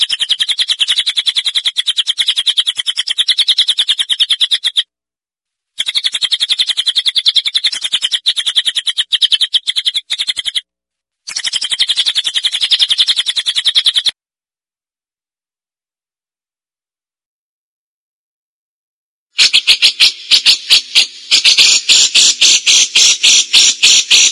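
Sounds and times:
cililin buzzy chattering: 0:00.0 - 0:04.8, 0:05.8 - 0:10.6, 0:11.3 - 0:14.1, 0:19.4 - 0:24.2.

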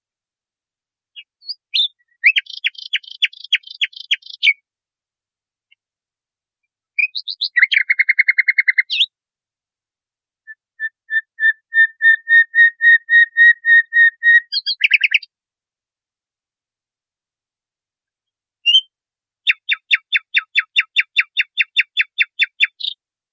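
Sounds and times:
nightingale singing: 0:01.2 - 0:04.6, 0:07.0 - 0:09.1, 0:10.5 - 0:15.3, 0:18.6 - 0:23.0.

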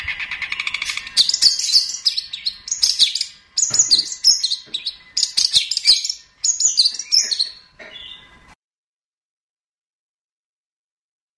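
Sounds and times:
long-tailed shrike singing: 0:00.0 - 0:08.4.

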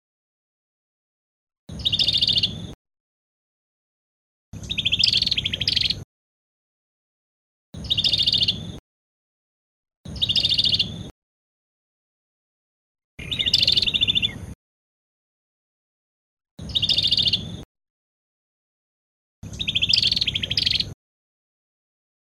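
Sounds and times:
Cambodian prinia bird singing: 0:01.7 - 0:02.8, 0:04.6 - 0:06.0, 0:07.8 - 0:08.8, 0:10.1 - 0:11.1, 0:13.2 - 0:14.6, 0:16.6 - 0:17.6, 0:19.4 - 0:21.0.

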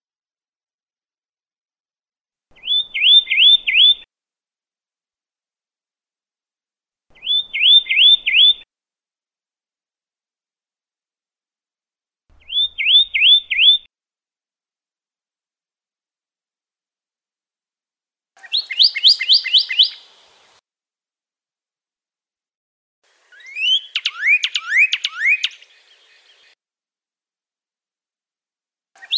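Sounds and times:
Pyrrhuloxia song with downslurred whistles and rapid trill: 0:02.6 - 0:04.0, 0:07.2 - 0:08.6, 0:12.4 - 0:13.9, 0:18.4 - 0:20.1, 0:23.3 - 0:25.7, 0:29.0 - 0:29.1.

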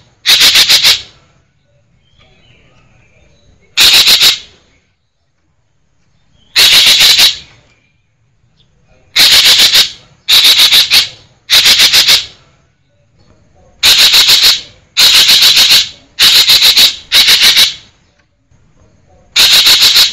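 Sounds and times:
green magpie chattering calls: 0:00.2 - 0:01.1, 0:03.8 - 0:04.5, 0:06.5 - 0:07.5, 0:09.1 - 0:12.4, 0:13.8 - 0:17.9, 0:19.4 - 0:20.1.

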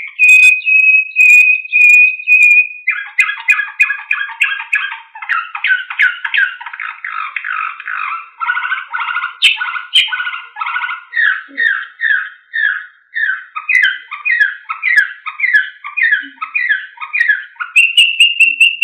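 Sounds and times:
Slavujar style canary song: 0:00.0 - 0:18.8.

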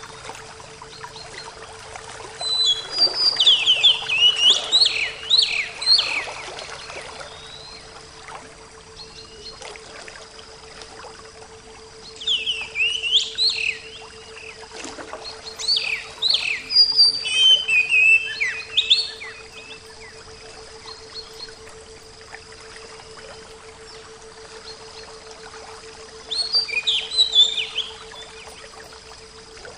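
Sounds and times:
Oriental magpie-robin song: 0:02.4 - 0:08.0, 0:09.0 - 0:09.7, 0:12.0 - 0:22.1, 0:26.2 - 0:28.9.

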